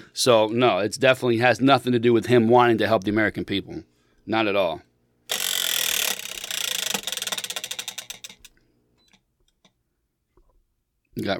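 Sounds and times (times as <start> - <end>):
speech: 0.0 - 5.4, 11.2 - 11.3
topic-picking wheel spinning and clicking: 5.3 - 9.2.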